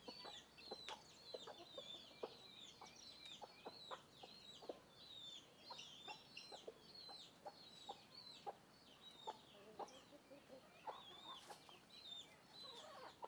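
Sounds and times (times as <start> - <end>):
chickens and chicks walking around the microphone: 0.0 - 13.2.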